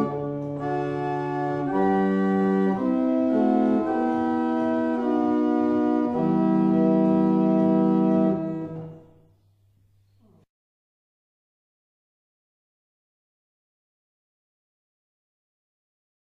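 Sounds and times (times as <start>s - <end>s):
barrel organs: 0.0s - 9.3s.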